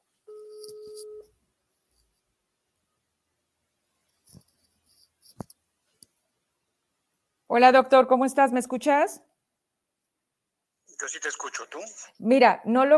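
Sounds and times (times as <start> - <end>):
steady electronic telephone tone: 0.3 - 1.3
speech: 7.5 - 9.3, 11.0 - 12.9.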